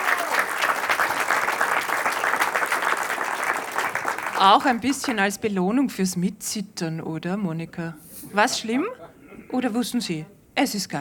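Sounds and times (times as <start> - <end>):
audience applause: 0.0 - 5.2
speech: 4.4 - 10.9.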